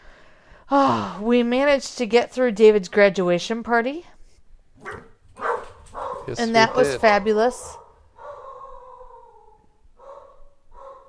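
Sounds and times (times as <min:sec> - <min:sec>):
speech: 0:00.7 - 0:04.1, 0:06.3 - 0:07.8
dogs barking: 0:04.8 - 0:11.0.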